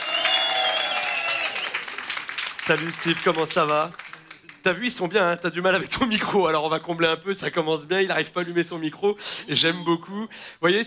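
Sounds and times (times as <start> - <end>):
audience cheering: 0.0 - 3.4
audience applause: 0.0 - 4.7
speech: 2.7 - 4.0, 4.6 - 10.8.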